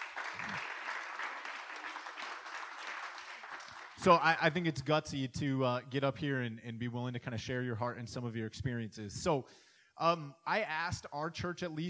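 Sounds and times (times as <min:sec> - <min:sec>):
audience applause: 0:00.0 - 0:04.2
speech: 0:04.0 - 0:11.8.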